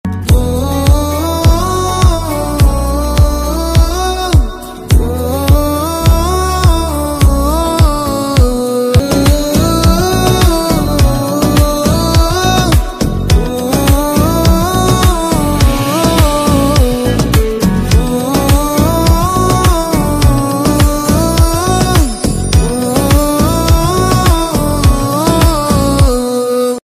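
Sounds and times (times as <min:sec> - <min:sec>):
song promo background music ringtone: 0:00.1 - 0:26.3.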